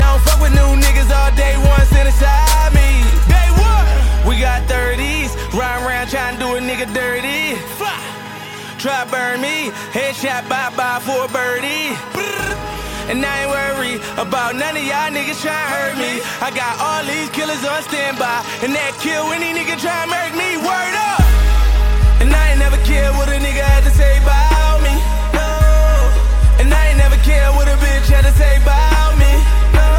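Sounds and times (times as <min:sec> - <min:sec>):
ringtone: 0:00.0 - 0:29.9.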